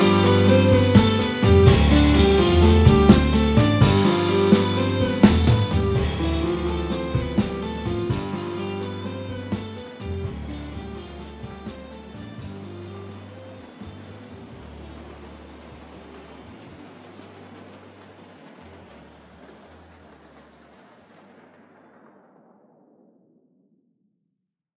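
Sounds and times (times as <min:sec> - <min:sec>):
song: 0:00.0 - 0:16.2.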